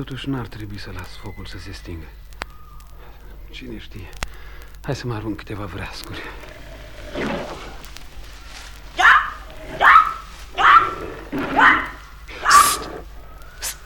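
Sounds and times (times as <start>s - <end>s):
speech: 0.0s - 2.3s, 3.5s - 6.5s
panther growling: 5.6s - 13.8s.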